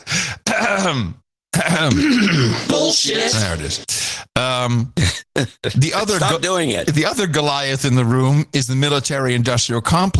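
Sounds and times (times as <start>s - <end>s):
recording of person clearing throat: 0.0s - 2.7s
speech: 0.8s - 10.1s.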